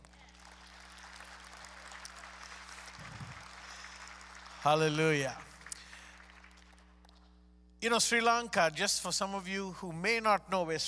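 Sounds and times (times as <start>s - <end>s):
audience clapping applause: 0.0s - 7.4s
speech: 4.6s - 5.5s, 7.8s - 10.8s.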